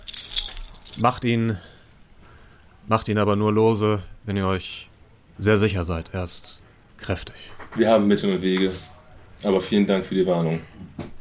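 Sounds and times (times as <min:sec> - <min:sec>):
keys jangling as a key is handed over: 0:00.0 - 0:01.1
speech: 0:01.0 - 0:01.7, 0:02.9 - 0:11.1.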